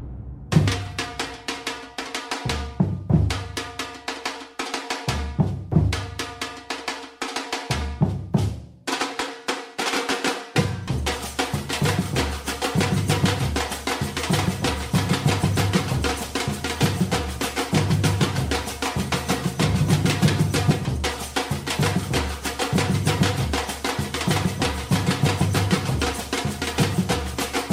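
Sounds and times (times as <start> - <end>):
samba music: 0.5 - 9.2, 9.8 - 27.7.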